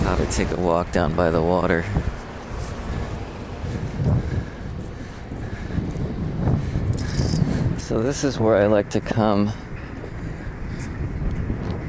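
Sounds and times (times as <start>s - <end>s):
wind gusting across a riverside pier: 0.0s - 11.8s
speech: 0.1s - 2.2s, 7.9s - 9.6s.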